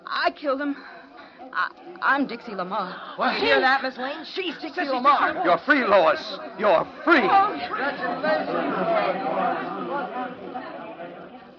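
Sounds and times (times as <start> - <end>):
speech: 0.2 - 10.4
spectators crowding around and congratulating: 3.2 - 11.5.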